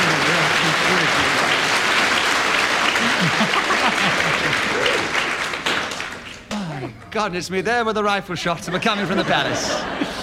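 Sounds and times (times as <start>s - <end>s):
laughter: 0.0s - 1.8s, 2.9s - 5.2s, 8.4s - 10.2s
audience applause: 0.0s - 6.5s
speech: 7.2s - 10.2s.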